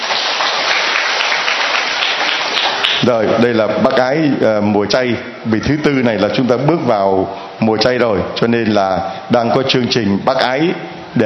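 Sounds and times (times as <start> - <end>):
audience applause at a church gathering: 0.0 - 3.0
speech: 3.0 - 11.2.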